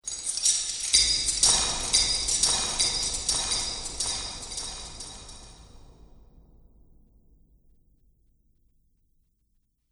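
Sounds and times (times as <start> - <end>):
metal chains: 0.0 - 5.6.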